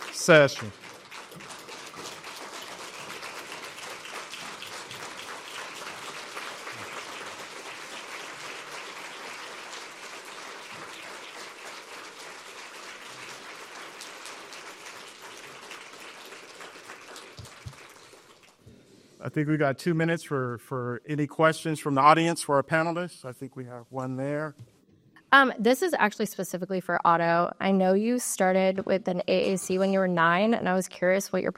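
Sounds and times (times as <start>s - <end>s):
standing ovation for a conference panel: 0.0s - 18.8s
speech: 0.2s - 0.8s, 19.4s - 24.7s, 25.3s - 31.5s.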